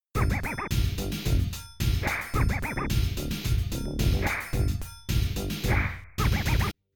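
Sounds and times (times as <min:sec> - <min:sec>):
opening rap tune: 0:00.2 - 0:06.8.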